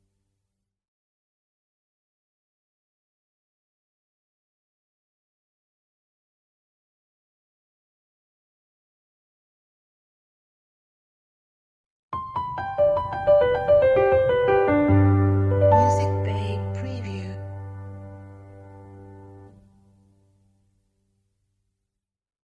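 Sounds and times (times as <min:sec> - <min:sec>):
piano logo jingle: 0:12.2 - 0:19.7.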